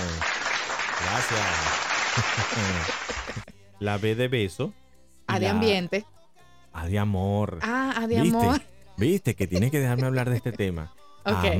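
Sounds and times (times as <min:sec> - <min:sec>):
applause: 0:00.0 - 0:03.5
laughter: 0:01.0 - 0:03.5, 0:09.0 - 0:11.5
speech: 0:01.1 - 0:03.2, 0:03.8 - 0:06.2, 0:06.8 - 0:11.5.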